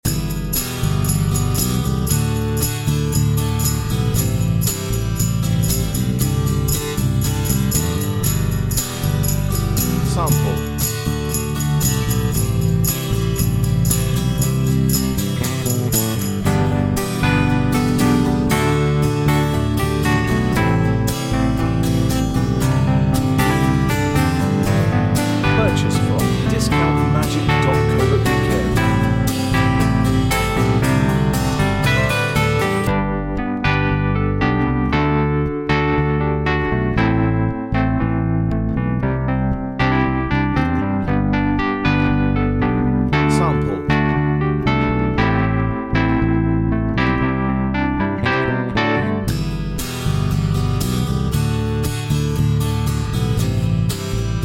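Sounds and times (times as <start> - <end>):
acoustic backing music: 0.0 - 54.4.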